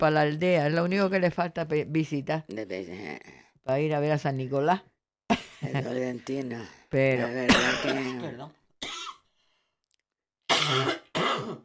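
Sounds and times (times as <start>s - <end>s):
speech: 0.0s - 4.9s, 5.6s - 8.6s, 10.6s - 11.6s
short cough: 7.5s - 8.2s, 10.5s - 11.6s.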